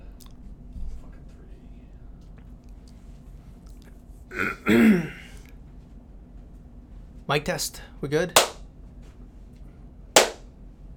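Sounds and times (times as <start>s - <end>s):
speech: 4.4s - 5.1s, 7.3s - 8.5s
double hand clap: 10.2s - 10.4s.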